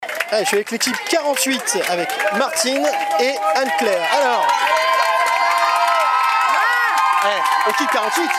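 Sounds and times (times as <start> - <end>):
crowd cheering on a team at an archery contest: 0.0 - 8.3
speech: 0.3 - 5.2, 7.2 - 8.3.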